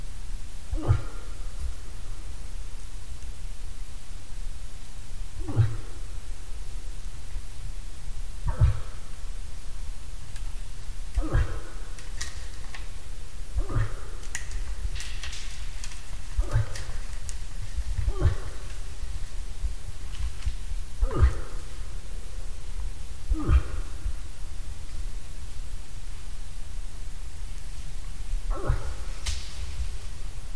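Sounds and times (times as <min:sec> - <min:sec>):
low rumble: 0:00.0 - 0:30.5
moose grunting: 0:00.7 - 0:02.1, 0:05.4 - 0:06.9, 0:08.4 - 0:25.3, 0:27.7 - 0:30.4.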